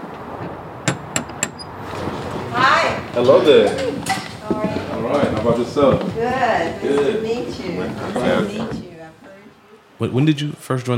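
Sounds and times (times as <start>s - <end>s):
metal door knocker striking a door: 0.8s - 1.7s
speech: 3.2s - 4.0s, 4.6s - 8.8s, 10.0s - 10.9s.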